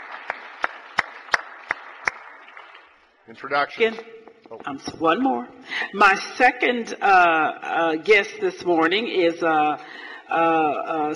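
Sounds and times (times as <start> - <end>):
hand claps in the Missouri Senate welcoming a guest: 0.0 - 3.0
speech: 3.3 - 11.1.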